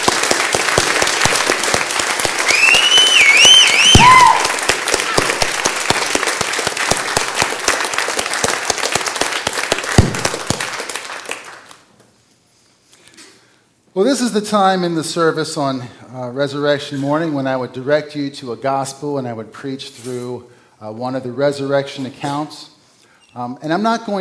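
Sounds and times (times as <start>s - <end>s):
audience applause: 0.0s - 11.8s
speech: 14.0s - 22.7s, 23.4s - 24.1s.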